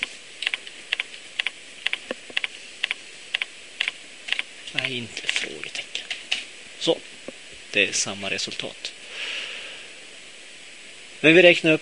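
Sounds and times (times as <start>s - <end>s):
typing code on a computer keyboard: 0.0s - 5.5s
speech: 4.7s - 5.9s, 6.8s - 7.1s, 7.7s - 9.4s, 11.2s - 11.7s.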